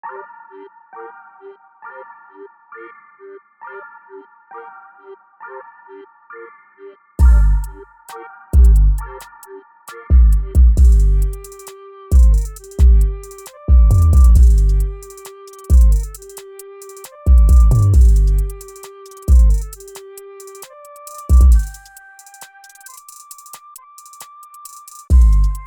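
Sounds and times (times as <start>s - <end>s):
instrumental beat: 7.2s - 25.6s.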